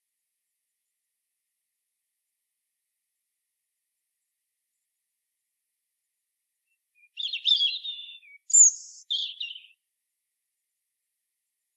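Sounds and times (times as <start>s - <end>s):
European robin singing: 6.7s - 9.8s.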